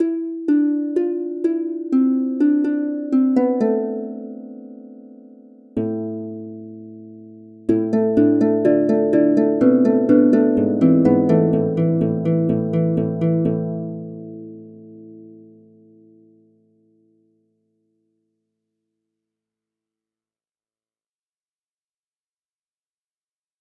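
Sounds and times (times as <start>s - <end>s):
harp: 0.0s - 17.4s.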